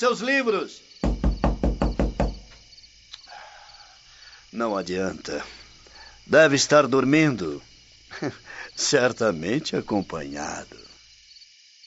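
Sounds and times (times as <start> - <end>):
speech: 0.0 - 0.9, 4.6 - 5.6, 6.3 - 10.9
knocking on a wooden door at night: 1.0 - 2.7.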